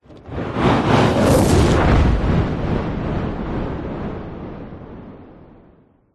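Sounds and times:
science fiction spacecraft explosion: 0:00.0 - 0:06.0
science fiction UFO spacecraft on fire flying by: 0:00.2 - 0:02.6.

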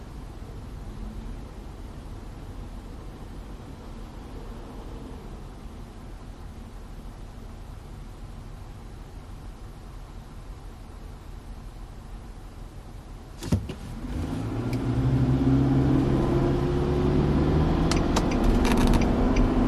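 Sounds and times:
Nissan Patrol pulling away: 0:13.4 - 0:19.6
Nissan Patrol turn signal ticking: 0:17.8 - 0:19.6.

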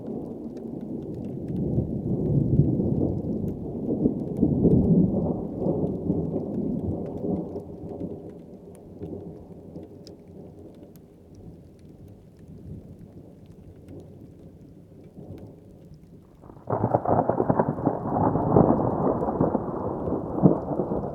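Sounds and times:
thunderstorm on top of Chacaltaya mountain at 5300m in Bolivia: 0:00.0 - 0:09.8, 0:16.4 - 0:21.1.

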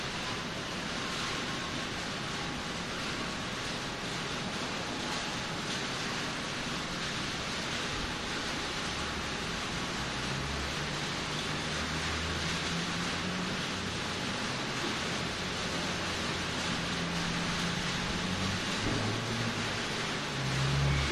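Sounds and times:
rain on an industrial warehouse roof: 0:00.0 - 0:21.0
workers outside in a yard: 0:00.0 - 0:21.0.

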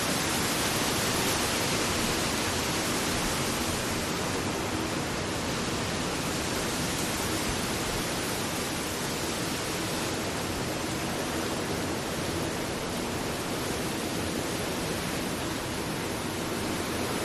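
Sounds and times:
constant wind in palm trees with gusts: 0:00.0 - 0:17.2.

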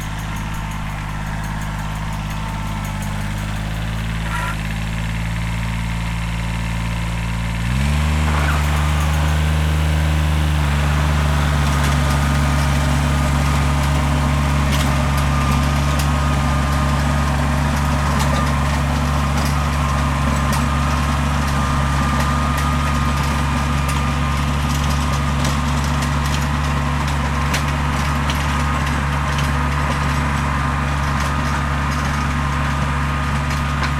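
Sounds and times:
industrial small cultivator tractor operating close by: 0:00.0 - 0:33.9.

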